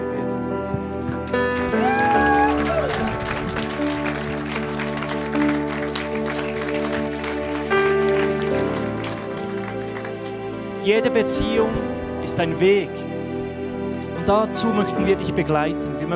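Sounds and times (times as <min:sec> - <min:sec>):
soft sustained keyboard chords: 0:00.0 - 0:16.1
audience applause: 0:01.2 - 0:10.7
speech: 0:10.9 - 0:13.2, 0:14.3 - 0:16.1.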